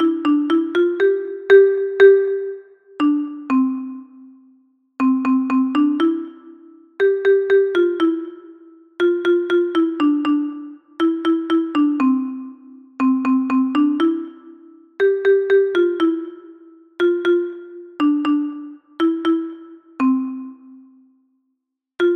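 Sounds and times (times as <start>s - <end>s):
alto xylophone: 0.0s - 21.0s, 22.0s - 22.1s.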